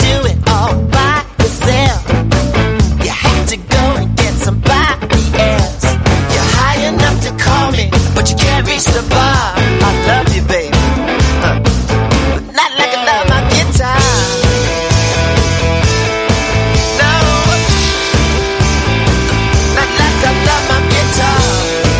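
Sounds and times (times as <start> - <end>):
guitar: 0.0 - 21.9.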